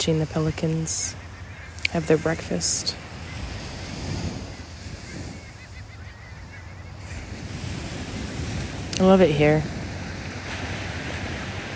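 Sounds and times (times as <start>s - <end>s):
speech: 0.0s - 1.3s, 1.9s - 3.0s, 9.0s - 9.8s
ocean waves at the beach: 0.0s - 11.7s.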